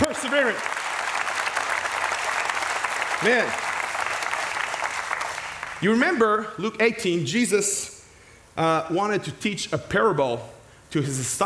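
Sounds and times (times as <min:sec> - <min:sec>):
audience clapping: 0:00.0 - 0:06.1
speech: 0:00.3 - 0:00.8, 0:03.2 - 0:03.7, 0:05.8 - 0:07.9, 0:08.6 - 0:11.4.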